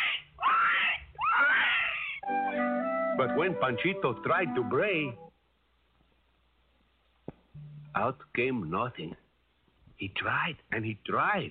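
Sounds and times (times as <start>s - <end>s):
pig squealing: 0.0s - 2.2s
speech: 3.2s - 5.3s, 8.0s - 9.2s, 10.0s - 11.4s.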